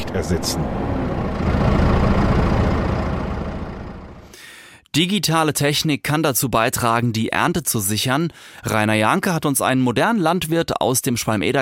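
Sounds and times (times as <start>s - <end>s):
hand-started tractor engine idling: 0.0s - 4.3s
speech: 0.2s - 1.8s, 5.0s - 11.6s.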